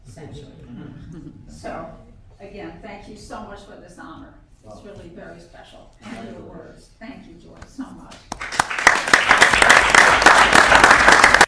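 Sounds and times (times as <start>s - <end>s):
speech: 0.2s - 9.8s
group applauding: 8.2s - 11.4s.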